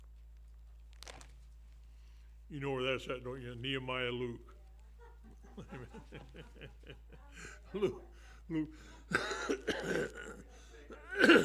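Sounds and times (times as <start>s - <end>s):
speech: 2.5s - 4.6s, 5.6s - 11.4s
laughter: 4.8s - 11.4s
man coughing and choking during a Bible talk: 7.7s - 11.4s.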